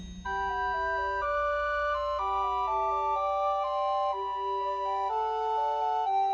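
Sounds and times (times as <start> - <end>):
trio of two descant recorders and one treble recorder: 0.3 - 6.3.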